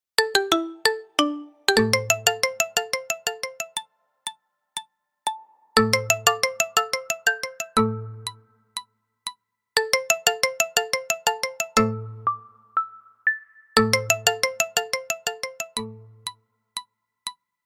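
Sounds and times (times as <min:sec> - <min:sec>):
marimba remix ringtone: 0:00.2 - 0:03.9, 0:05.3 - 0:08.5, 0:09.8 - 0:16.4.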